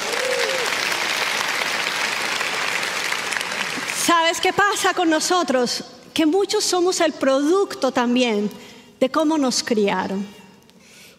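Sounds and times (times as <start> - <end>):
audience applause: 0.0 - 4.0
speech: 4.1 - 10.4.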